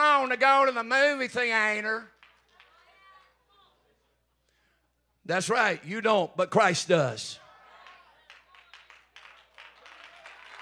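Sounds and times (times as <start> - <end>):
speech: 0.3 - 2.2, 5.3 - 7.4
scattered hand claps from audience: 2.1 - 3.0, 7.8 - 10.6.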